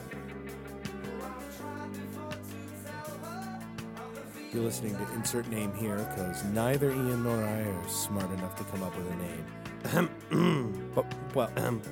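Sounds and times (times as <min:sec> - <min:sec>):
speech: 0:04.5 - 0:11.9
man clearing throat: 0:09.8 - 0:11.8.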